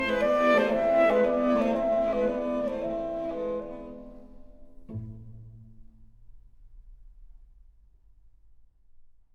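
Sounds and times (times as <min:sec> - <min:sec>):
clarinet: 0:00.0 - 0:04.7
strings: 0:00.0 - 0:06.1.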